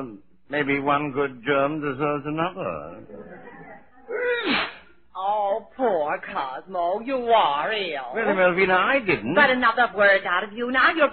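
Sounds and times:
speech: 0.0 - 3.6, 5.6 - 11.1
laughter: 2.8 - 4.4
person sneezing: 4.1 - 5.0.

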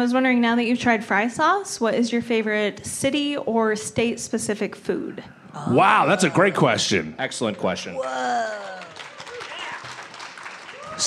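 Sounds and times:
speech: 0.0 - 8.8
audience clapping: 7.3 - 11.0.

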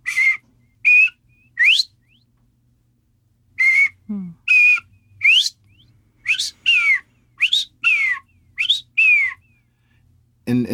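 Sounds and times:
bobwhite quail calling: 0.0 - 2.3, 3.6 - 9.7.

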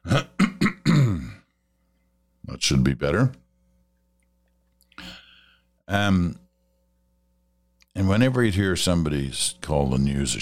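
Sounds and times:
throat clearing: 0.0 - 1.5
speech: 2.6 - 3.4, 5.9 - 6.4, 8.0 - 10.4.

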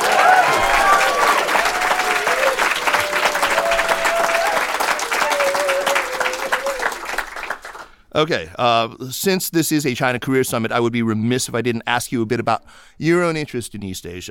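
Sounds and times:
audience cheering: 0.0 - 7.8
audience applause at a China Career Summit at Seneca: 0.0 - 8.0
speech: 8.2 - 14.3.

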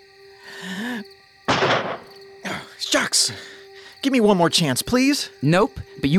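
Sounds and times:
gunshot from boys' target shooting: 1.5 - 2.1
speech: 2.9 - 6.1.

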